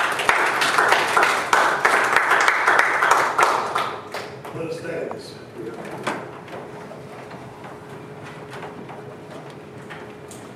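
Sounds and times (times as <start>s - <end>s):
audience applause: 0.0s - 4.4s.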